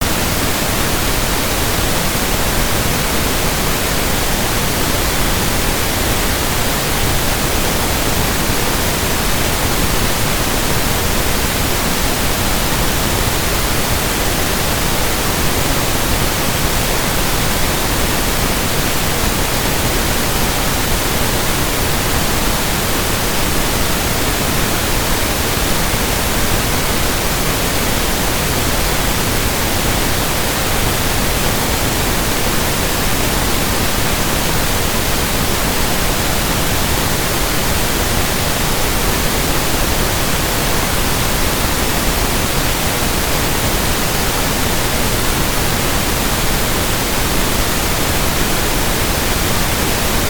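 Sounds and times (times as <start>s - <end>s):
pink noise: 0.0s - 50.2s.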